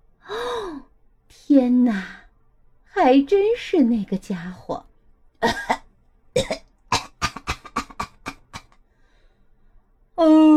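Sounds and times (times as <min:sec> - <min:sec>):
speech: 0:00.3 - 0:02.2, 0:03.0 - 0:05.8
harsh raspy coughing fit: 0:05.4 - 0:05.8, 0:06.4 - 0:08.8.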